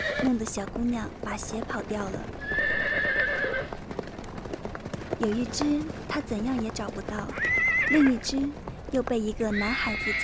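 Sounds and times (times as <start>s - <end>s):
horse whinnying: 0.0s - 0.3s, 2.4s - 3.7s, 7.4s - 8.2s, 9.5s - 10.2s
clattering hoofbeats of two horse-drawn carriages rushing across a street: 0.0s - 10.2s
speech: 0.2s - 2.6s, 5.2s - 10.2s.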